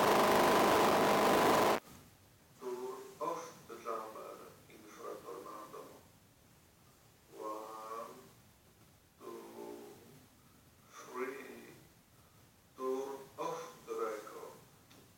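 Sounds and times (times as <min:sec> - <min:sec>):
signal jammer real test at 1 m: 0:00.0 - 0:01.8.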